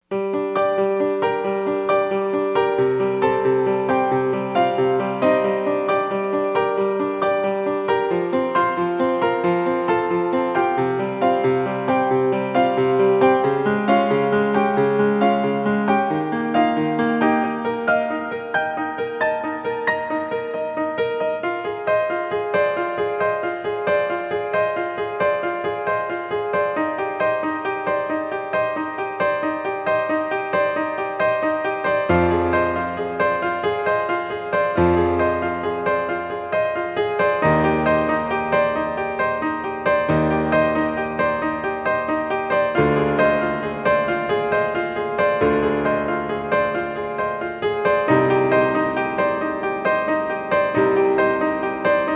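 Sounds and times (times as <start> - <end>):
solo piano prelude in G minor: 0.0 - 52.1.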